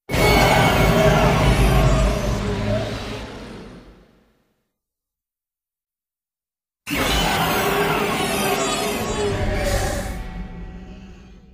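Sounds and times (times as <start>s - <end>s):
roar: 0.1s - 4.3s, 6.9s - 11.5s.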